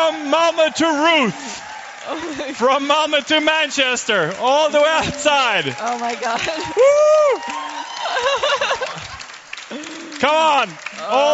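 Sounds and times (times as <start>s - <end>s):
crowd whooping and shouting: 0.0s - 2.8s, 4.8s - 9.2s
crowd applauding: 0.0s - 11.3s
speech: 0.1s - 9.0s, 9.7s - 11.3s
laughter: 2.0s - 3.1s, 4.8s - 10.3s.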